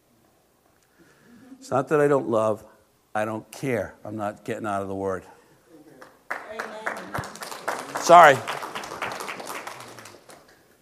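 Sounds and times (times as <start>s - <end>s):
speech: 1.6s - 5.4s, 8.0s - 8.6s
audience clapping: 6.0s - 10.8s.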